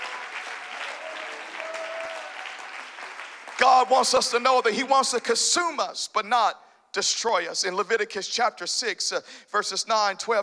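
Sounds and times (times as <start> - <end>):
audience clapping hands: 0.0 - 4.4
speech: 3.6 - 10.4.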